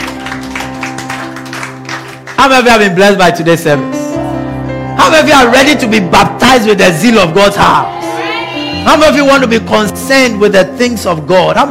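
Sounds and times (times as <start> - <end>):
audience clapping: 0.0 - 2.9
speech: 2.4 - 4.0, 5.0 - 8.0, 8.8 - 11.7.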